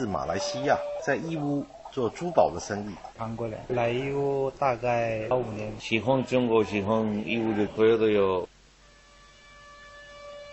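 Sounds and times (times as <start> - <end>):
speech: 0.0 - 8.5
train whistle blast: 8.8 - 10.5.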